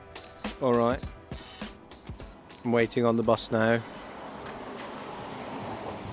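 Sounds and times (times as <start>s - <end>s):
speech: 0.6s - 1.1s, 2.7s - 3.9s
car passing by at bus stop: 3.5s - 6.1s.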